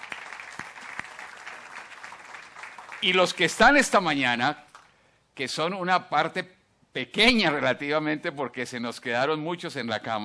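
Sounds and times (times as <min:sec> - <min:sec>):
audience applause: 0:00.0 - 0:03.4
speech: 0:03.0 - 0:04.6, 0:05.4 - 0:10.2.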